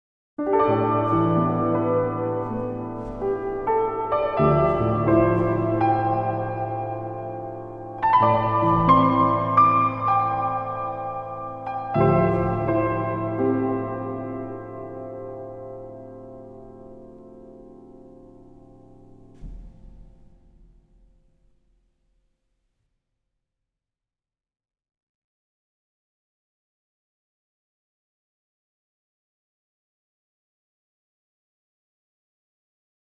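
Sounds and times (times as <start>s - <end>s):
piano: 0.4s - 21.8s.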